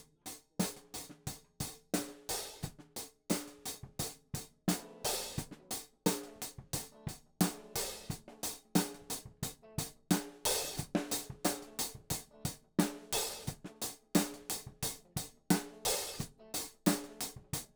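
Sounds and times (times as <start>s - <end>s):
hi-hat: 0.4s - 17.5s.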